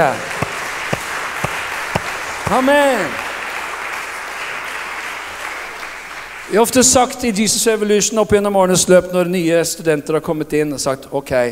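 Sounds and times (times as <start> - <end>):
speech: 0.0 - 0.3, 2.5 - 3.2, 6.5 - 11.5
audience applauding: 0.0 - 7.0.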